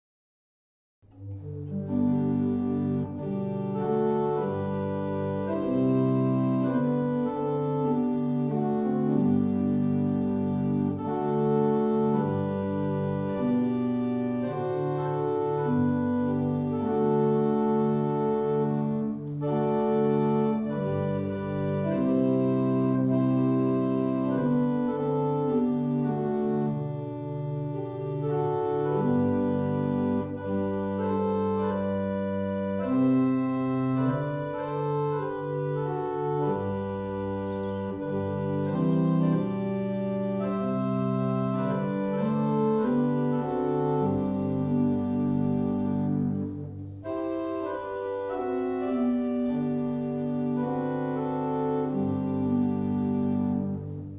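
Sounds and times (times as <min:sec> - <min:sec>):
barrel organs: 0:01.4 - 0:54.1.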